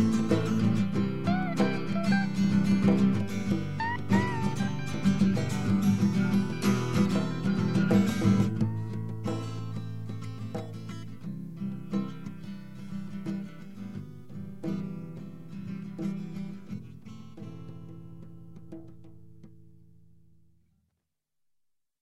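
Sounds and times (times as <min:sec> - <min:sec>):
acoustic music composition: 0:00.0 - 0:20.8.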